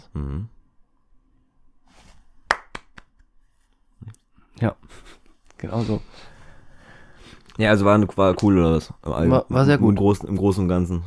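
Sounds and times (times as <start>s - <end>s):
hand claps, Frankfurt applause: 2.5s - 3.3s
speech: 4.6s - 6.3s, 7.6s - 11.0s.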